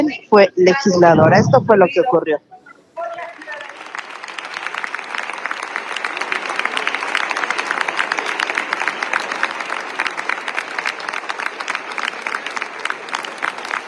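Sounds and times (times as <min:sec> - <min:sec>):
speech: 0:00.0 - 0:02.5
large group applauding in the Senate: 0:03.0 - 0:13.8.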